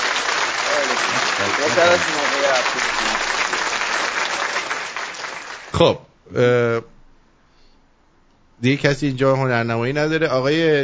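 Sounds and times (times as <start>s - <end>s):
audience clapping for a guest on a show: 0.0s - 5.8s
speech: 1.0s - 3.5s, 5.8s - 6.9s, 8.6s - 10.8s.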